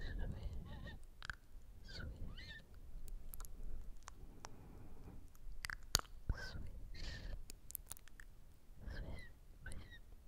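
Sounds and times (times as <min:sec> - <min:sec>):
squeaky, quacking vocal noises: 0:00.0 - 0:01.1, 0:01.8 - 0:02.7, 0:08.8 - 0:10.1
wet mouth clicks, smacks and pops: 0:00.2 - 0:04.6, 0:05.2 - 0:10.0.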